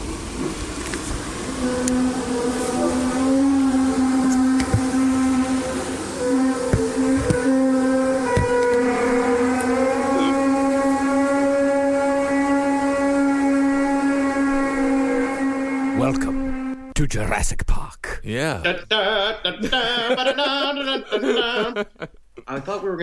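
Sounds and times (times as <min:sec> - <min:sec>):
low droning hum, the British hum: 0:00.0 - 0:17.0
speech: 0:17.2 - 0:23.0
laughter: 0:18.6 - 0:22.2.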